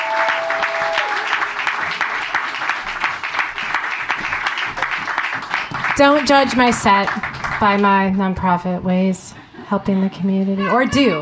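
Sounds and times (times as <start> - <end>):
audience applause: 0.0 - 8.0
speech: 6.0 - 11.2.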